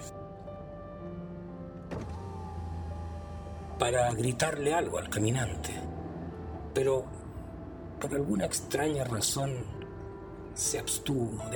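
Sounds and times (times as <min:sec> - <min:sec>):
car low rumble: 0:00.0 - 0:11.5
car window lowered by electric motor: 0:01.8 - 0:03.9
soft thunk of car window: 0:01.9 - 0:02.2
speech: 0:03.8 - 0:06.0, 0:06.8 - 0:07.2, 0:08.0 - 0:09.8, 0:10.6 - 0:11.5.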